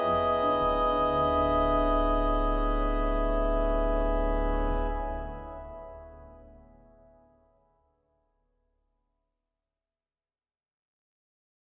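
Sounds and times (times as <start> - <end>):
organ oboe stop: 0.0 - 6.7.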